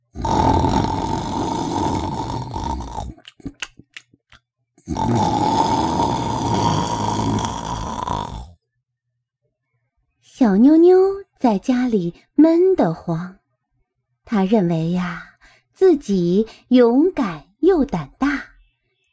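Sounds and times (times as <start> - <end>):
loud snoring: 0.1 - 3.2, 4.8 - 8.6
speech: 5.0 - 5.4, 10.6 - 13.4, 14.3 - 18.3.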